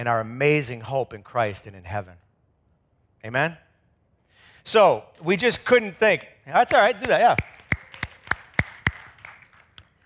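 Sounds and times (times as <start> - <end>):
speech: 0.0 - 2.2, 3.2 - 3.6, 4.6 - 7.5
audience clapping: 6.6 - 10.0.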